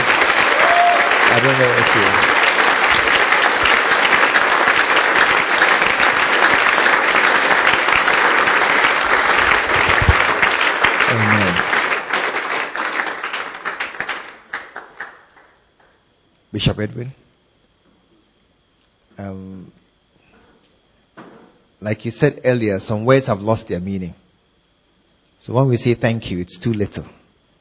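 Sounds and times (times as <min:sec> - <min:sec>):
audience clapping: 0:00.0 - 0:16.0
speech: 0:01.4 - 0:02.4, 0:16.6 - 0:17.2, 0:19.2 - 0:19.8, 0:21.8 - 0:24.2, 0:25.4 - 0:27.2.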